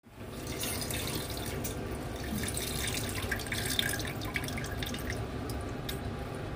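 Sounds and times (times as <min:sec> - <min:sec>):
person urinating in an internet cafe toilet: 0:00.2 - 0:06.4.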